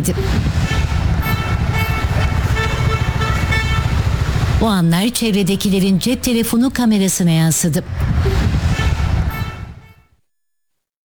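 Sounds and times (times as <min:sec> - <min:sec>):
speech: 0:00.0 - 0:01.0, 0:04.6 - 0:08.6
car horns honking at cows crossing the road: 0:00.0 - 0:06.8, 0:08.0 - 0:10.2
road traffic rumble of engines and tyres: 0:00.0 - 0:10.0.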